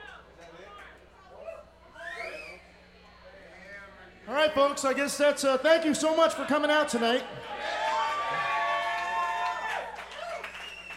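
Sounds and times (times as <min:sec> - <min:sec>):
speech: 0:04.5 - 0:07.5
audience cheering: 0:06.0 - 0:10.9
audience applause: 0:07.4 - 0:10.9.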